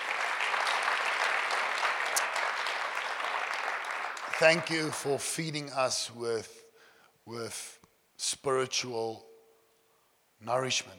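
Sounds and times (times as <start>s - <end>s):
audience clapping: 0.0s - 5.6s
speech: 4.4s - 6.6s, 7.3s - 9.3s, 10.4s - 10.9s.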